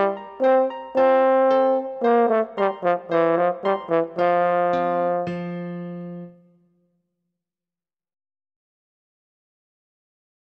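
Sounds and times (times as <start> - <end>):
French horn dance song solo: 0.0 - 6.4
piano: 0.0 - 6.8.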